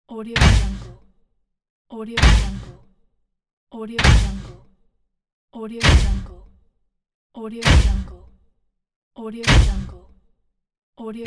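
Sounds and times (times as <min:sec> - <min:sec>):
mech footsteps: 0:00.4 - 0:01.0, 0:02.2 - 0:02.8, 0:04.0 - 0:04.6, 0:05.8 - 0:06.4, 0:07.6 - 0:08.2, 0:09.5 - 0:10.0.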